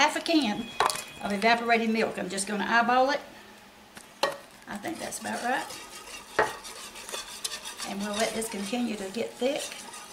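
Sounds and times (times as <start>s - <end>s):
speech: 0.2s - 3.3s, 4.7s - 5.8s, 7.9s - 9.9s
whisk stirring gravy in a pan: 4.7s - 10.1s.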